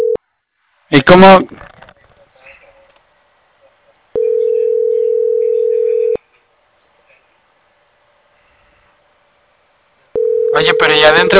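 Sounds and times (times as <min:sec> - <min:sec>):
telephone ringing tone on an outgoing call: 0:00.0 - 0:00.2, 0:04.2 - 0:06.2, 0:10.2 - 0:11.1
speech: 0:00.9 - 0:01.6.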